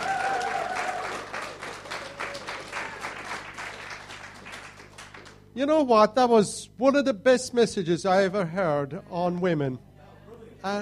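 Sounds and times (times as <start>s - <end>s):
audience applause: 0.0s - 5.4s
speech: 5.6s - 9.9s, 10.6s - 10.8s.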